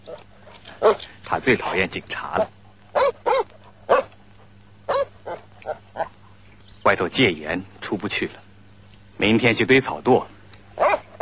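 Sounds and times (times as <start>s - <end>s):
dog barking: 0.8s - 1.0s, 2.9s - 4.2s, 4.9s - 6.2s, 10.8s - 11.2s
speech: 1.3s - 2.6s, 6.9s - 8.4s, 9.2s - 10.3s.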